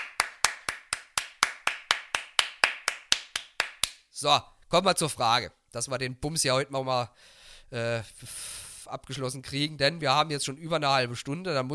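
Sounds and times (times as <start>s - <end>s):
applause: 0.0s - 4.0s
speech: 4.2s - 11.7s.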